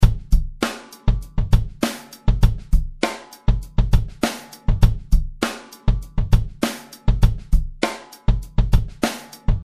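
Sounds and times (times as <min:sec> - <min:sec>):
bass: 0:00.0 - 0:03.0, 0:03.6 - 0:05.3, 0:05.9 - 0:07.7.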